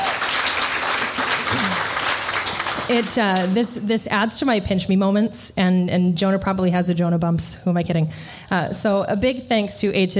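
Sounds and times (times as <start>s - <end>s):
crowd applauding: 0.0s - 3.6s
speech: 2.9s - 10.1s.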